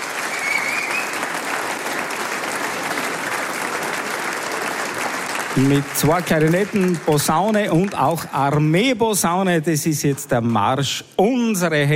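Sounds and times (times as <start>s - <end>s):
audience applause: 0.0s - 8.8s
speech: 5.6s - 11.9s.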